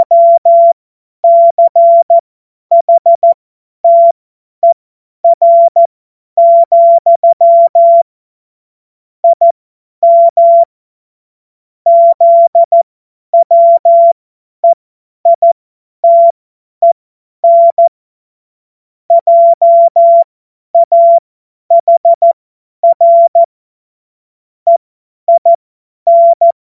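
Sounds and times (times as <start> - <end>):
CW Morse code beeps: 0.0 - 8.1, 9.2 - 10.7, 11.9 - 12.8, 13.4 - 17.9, 19.1 - 23.5, 24.7 - 26.6.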